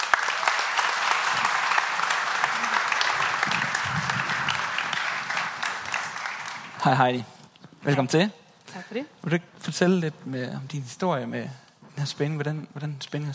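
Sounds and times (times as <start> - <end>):
church congregation applauding a speaker: 0.0 - 7.3
speech: 6.8 - 13.3.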